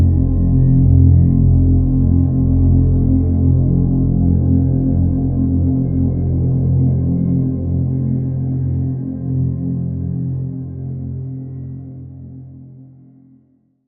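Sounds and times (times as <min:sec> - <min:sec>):
drone in F: 0:00.0 - 0:10.9.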